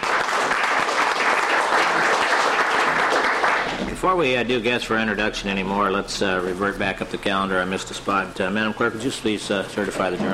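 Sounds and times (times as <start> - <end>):
applause welcoming a guest at a State Affairs committee session in Juneau: 0.0 - 3.9
speech: 4.0 - 10.3.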